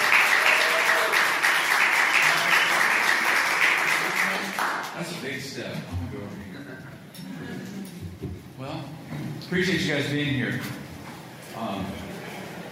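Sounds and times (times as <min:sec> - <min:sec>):
audience at a youth leadership conference clapping for a speaker: 0:00.0 - 0:05.3
speech: 0:09.5 - 0:10.8.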